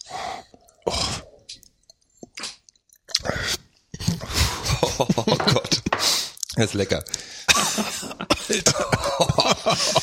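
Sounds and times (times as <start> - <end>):
people gulping Moorgeist liqueur and lip-smacking: 0.5 - 4.2
laughter: 4.2 - 6.0, 7.5 - 10.0
speech: 6.6 - 7.3, 8.5 - 10.0.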